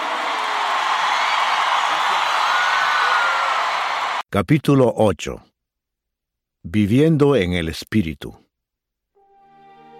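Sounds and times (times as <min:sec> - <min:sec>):
applause: 0:00.0 - 0:04.2
speech: 0:04.3 - 0:05.5, 0:06.6 - 0:08.4.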